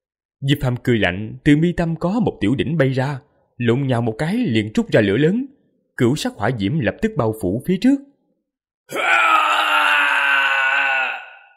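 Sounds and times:
speech: 0.4s - 8.1s, 8.9s - 9.4s
ghost's mournful wailing cry: 8.9s - 11.5s.

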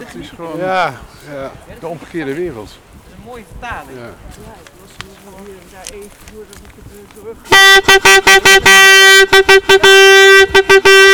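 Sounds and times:
speech: 0.0s - 11.1s
vuvuzela blaring at a noise protest at the Schiphol detention centre, Netherlands: 7.3s - 11.1s.

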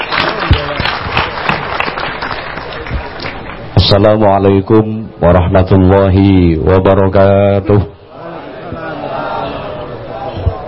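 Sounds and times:
audience applauding: 0.0s - 3.7s
speech: 3.9s - 7.9s.

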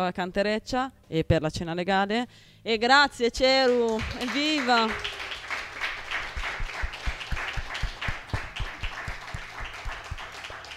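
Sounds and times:
speech: 0.0s - 5.2s
audience applause for a returning performer at an anniversary evening in Milan: 3.9s - 10.7s.

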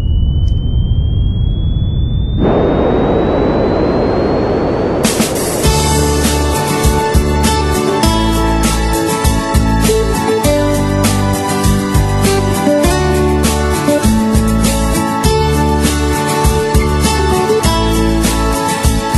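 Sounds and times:
jet airplane engine roaring with a high whine: 0.0s - 7.2s
music with heavy beats: 5.0s - 19.1s.

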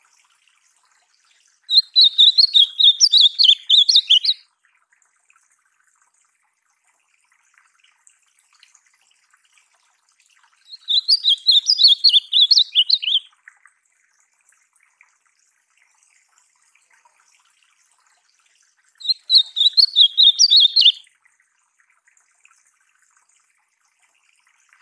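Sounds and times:
ultramarine grosbeak singing: 1.7s - 4.4s, 10.7s - 13.3s, 19.0s - 21.0s.

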